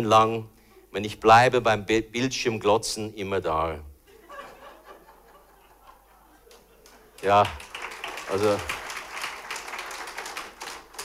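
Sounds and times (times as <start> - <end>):
speech: 0.0 - 3.9, 7.2 - 7.7, 8.3 - 8.8
laughter: 4.1 - 7.3
audience clapping: 6.3 - 11.0.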